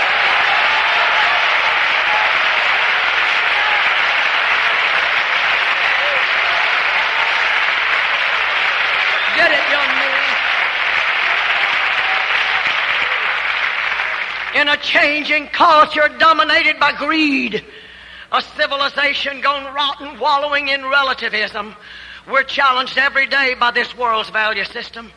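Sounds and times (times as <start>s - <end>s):
audience clapping and shouting: 0.0s - 15.3s
speech: 14.6s - 25.1s.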